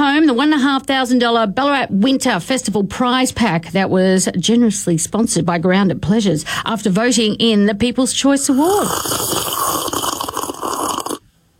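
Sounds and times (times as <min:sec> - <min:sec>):
speech: 0:00.3 - 0:10.0
slurping hot chocolate: 0:08.5 - 0:11.3.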